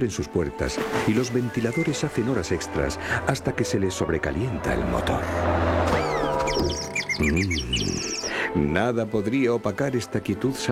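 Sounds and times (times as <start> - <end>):
speech: 0.0 - 6.0, 6.6 - 10.7
birds singing: 5.9 - 8.5.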